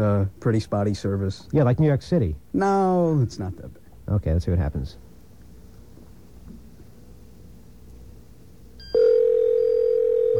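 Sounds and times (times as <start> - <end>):
speech: 0.0 - 5.1
cell phone ringing: 8.8 - 10.3.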